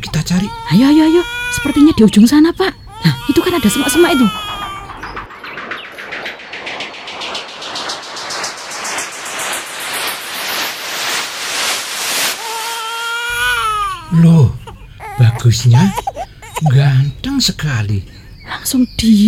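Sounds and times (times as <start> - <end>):
abandoned baby crying: 0.0 - 2.2, 2.9 - 5.3, 12.4 - 17.0
speech: 0.1 - 4.5, 15.4 - 19.2
rapid pulsing texture: 3.0 - 14.5
eerie rising tone: 3.2 - 14.2.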